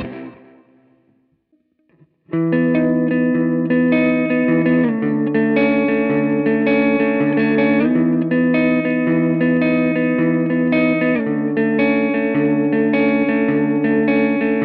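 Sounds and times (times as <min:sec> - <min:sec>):
Fender Twin Reverb amplifier breakup: 0:00.0 - 0:14.6.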